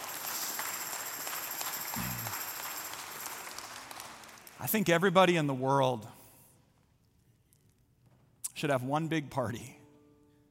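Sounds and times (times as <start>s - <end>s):
audience clapping: 0.0s - 4.9s
speech: 4.6s - 6.2s, 8.6s - 9.8s.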